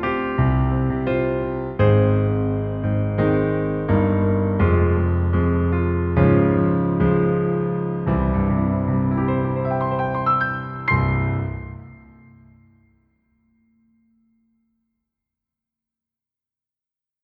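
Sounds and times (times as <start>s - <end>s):
piano: 0.0s - 13.0s.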